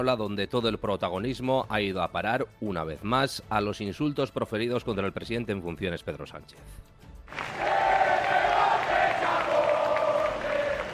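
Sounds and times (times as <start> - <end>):
speech: 0.0 - 7.7
crowd booing: 7.3 - 10.9.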